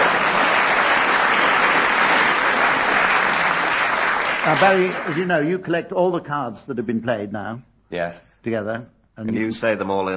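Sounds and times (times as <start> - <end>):
audience applause: 0.0 - 5.6
speech: 4.5 - 10.1.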